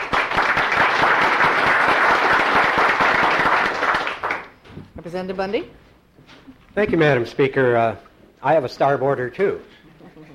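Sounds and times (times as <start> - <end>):
applause in a legislative chamber welcoming a guest page: 0.0 - 4.6
speech: 5.1 - 5.8, 6.8 - 9.7.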